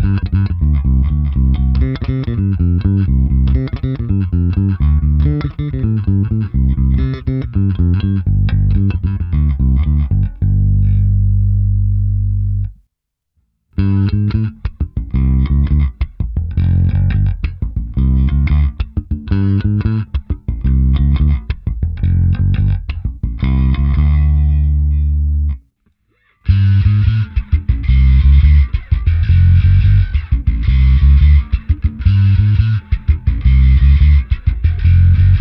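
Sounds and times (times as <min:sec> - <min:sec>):
distorted slap bass guitar through compressor and amp simulation: 0:00.0 - 0:12.8, 0:13.8 - 0:25.6, 0:26.4 - 0:35.3.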